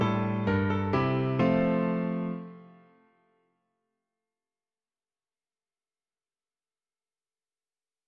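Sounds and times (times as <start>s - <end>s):
piano: 0.0s - 3.4s.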